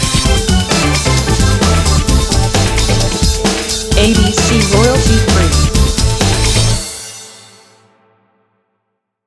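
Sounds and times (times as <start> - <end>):
guitar breakbeat: 0.2 - 6.8.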